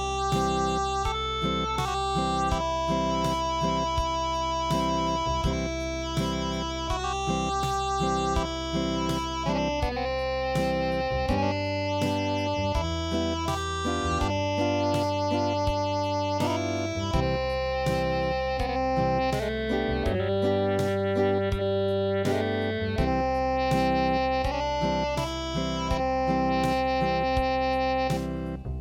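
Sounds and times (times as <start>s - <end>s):
acoustic midi music: 0.0s - 28.7s.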